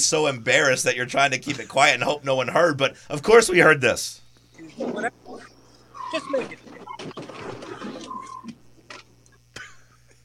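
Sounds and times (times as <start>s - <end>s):
speech: 0.0s - 5.2s, 6.1s - 7.3s
steady low hum: 0.0s - 10.2s
tires squeaking: 5.3s - 8.6s.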